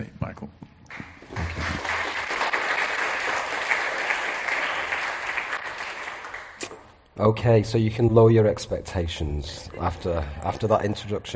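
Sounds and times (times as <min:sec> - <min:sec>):
audience applause welcoming a speaker: 0:00.9 - 0:06.7
speech: 0:07.2 - 0:11.3.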